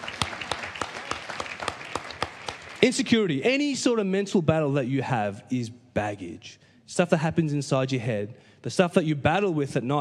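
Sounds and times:
audience applause: 0.0s - 3.2s
speech: 2.8s - 9.9s.

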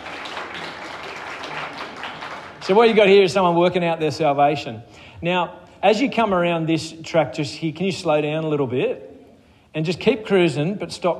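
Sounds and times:
crowd clapping: 0.0s - 3.4s
speech: 2.7s - 9.1s, 9.8s - 11.1s.

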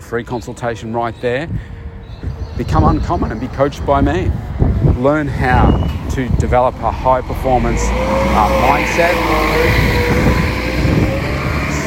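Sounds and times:
speech: 0.1s - 1.8s, 2.6s - 10.2s
bus passing by: 3.2s - 11.8s.

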